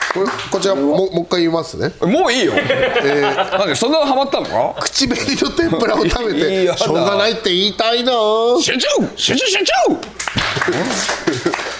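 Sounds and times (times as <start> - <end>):
scattered hand claps: 0.0 - 0.6, 10.0 - 11.7
speech: 0.2 - 11.7
people laughing: 2.4 - 7.2, 10.5 - 11.7.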